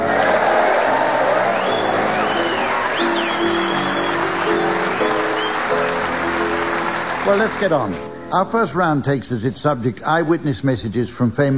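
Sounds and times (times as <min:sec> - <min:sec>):
studio audience applauding at a comedy show: 0:00.0 - 0:08.1
speech: 0:07.3 - 0:11.5.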